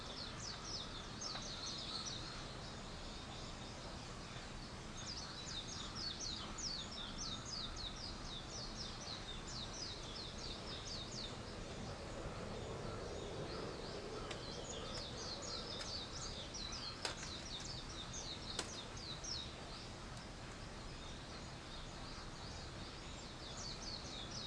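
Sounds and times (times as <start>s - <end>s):
background hiss: 0.0s - 24.4s
birds chirping: 0.0s - 24.4s.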